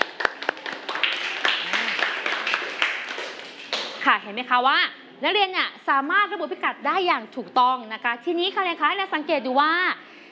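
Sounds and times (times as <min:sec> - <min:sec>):
children clapping in a classroom: 0:00.0 - 0:04.1
speech: 0:04.1 - 0:10.0.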